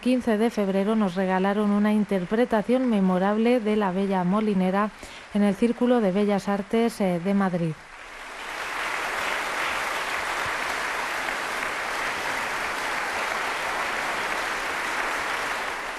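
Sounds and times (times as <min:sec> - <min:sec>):
speech: 0:00.0 - 0:07.9
concert audience applause: 0:07.8 - 0:15.9.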